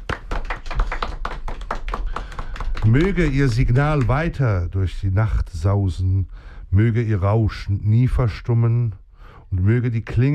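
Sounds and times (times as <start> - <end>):
sharp hand claps: 0.0 - 4.5
speech: 2.8 - 10.3.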